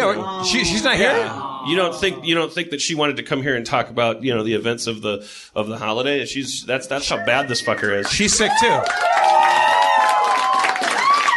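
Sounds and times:
speech: 0.1s - 9.2s
audience applause: 7.7s - 11.3s.

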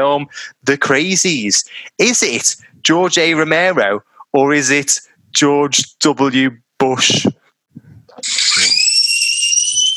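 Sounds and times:
speech: 0.0s - 7.4s, 8.2s - 8.8s
loud scream from a horror film: 8.2s - 9.9s.

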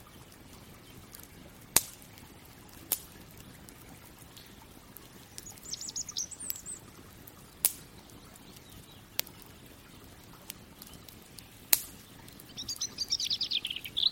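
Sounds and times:
fireplace crackling: 0.0s - 14.0s
low hiss: 0.0s - 14.0s
high chirps: 5.4s - 6.8s, 12.5s - 14.0s.

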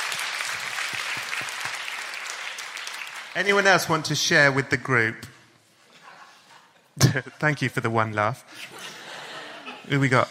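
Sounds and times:
audience applause: 0.0s - 3.7s
speech: 3.4s - 5.3s, 7.1s - 8.8s, 9.8s - 10.2s
laughter: 5.9s - 6.9s, 8.6s - 10.1s.

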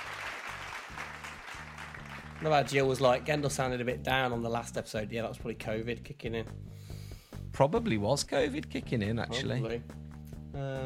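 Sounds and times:
clapping sound effect: 0.0s - 3.4s
speech: 2.4s - 6.8s, 7.6s - 10.8s.

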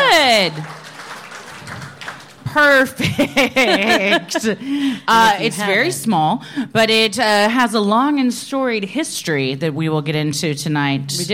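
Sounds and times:
crowd applause: 0.0s - 4.0s
speech: 0.4s - 0.8s, 2.6s - 11.3s
laughter: 2.7s - 6.0s.

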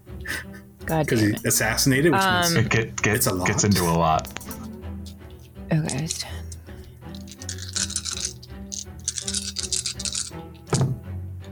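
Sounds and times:
speech: 0.9s - 4.2s, 5.7s - 6.4s
dice rolling and clattering: 4.3s - 10.9s.

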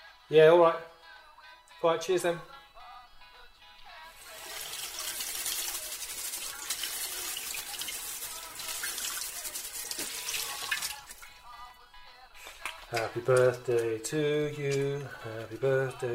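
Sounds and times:
speech: 0.3s - 0.9s, 1.8s - 2.5s, 12.9s - 16.1s
tap water running over bananas: 4.2s - 11.3s.

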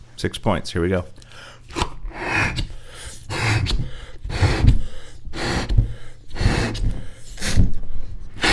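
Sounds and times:
speech: 0.2s - 1.8s
person blowing up a balloon: 1.7s - 7.8s, 8.4s - 8.5s.

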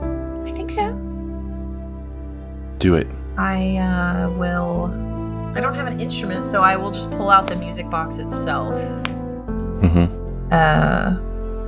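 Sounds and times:
speech: 0.5s - 1.1s, 2.8s - 9.2s, 9.8s - 11.3s
throat clearing: 9.8s - 10.2s.

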